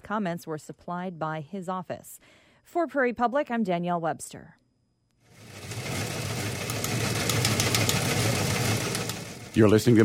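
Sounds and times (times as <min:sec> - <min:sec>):
speech: 0:00.1 - 0:04.6, 0:09.6 - 0:10.0
newsroom wire machine clicking: 0:06.6 - 0:09.7.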